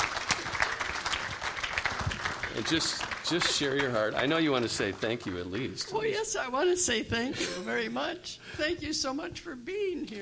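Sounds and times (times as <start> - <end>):
audience clapping: 0.0 - 5.9
speech: 2.6 - 10.1.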